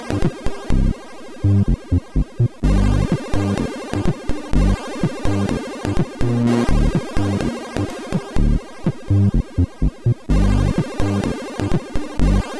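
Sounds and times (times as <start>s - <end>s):
chiptune music on MOS6581R4 sound chip: 0.1s - 4.8s, 5.9s - 12.5s.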